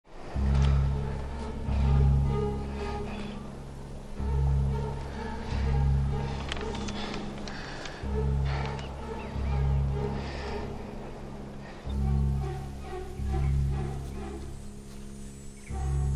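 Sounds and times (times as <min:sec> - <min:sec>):
suspense music: 0:00.1 - 0:16.1.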